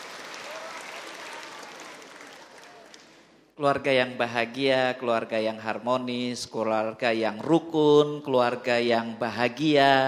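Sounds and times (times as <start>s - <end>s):
applause: 0.0s - 3.4s
speech: 3.6s - 10.0s.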